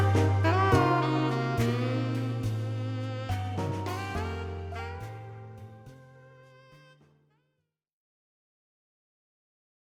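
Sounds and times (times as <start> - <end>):
muscle blues music: 0.0 - 7.0.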